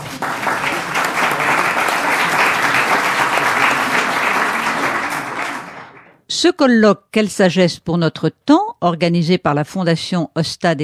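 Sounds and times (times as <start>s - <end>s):
audience applause: 0.0s - 6.2s
speech: 6.4s - 10.8s.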